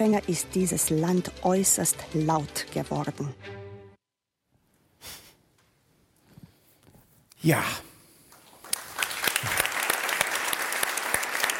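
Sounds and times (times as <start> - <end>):
speech: 0.0 - 3.6, 7.4 - 7.9
audience applause: 8.3 - 11.5.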